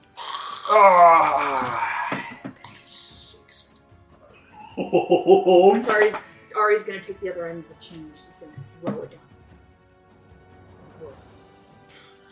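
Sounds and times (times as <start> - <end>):
person imitating Gollum-like scream: 0.2 - 2.4
speech: 0.7 - 1.9, 4.9 - 9.2
laughter: 4.6 - 6.2.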